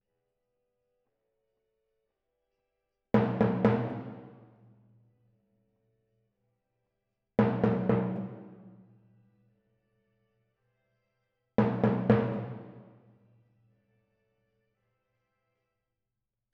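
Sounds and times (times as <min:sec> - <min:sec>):
timpani in F: 0:03.2 - 0:04.8, 0:07.4 - 0:09.1, 0:11.6 - 0:13.2.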